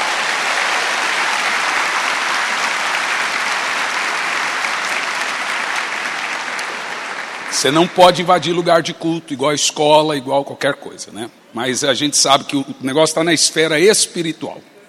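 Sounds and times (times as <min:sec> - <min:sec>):
audience applauding: 0:00.0 - 0:08.6
speech: 0:07.6 - 0:14.7.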